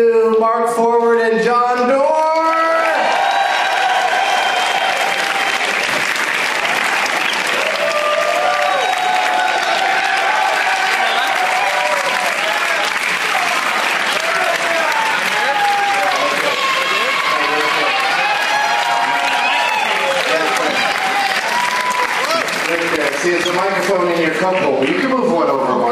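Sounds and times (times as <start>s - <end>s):
speech: 0.0s - 2.0s
audience applause welcoming comedians on stage: 2.4s - 25.8s
crowd voices: 5.1s - 24.5s.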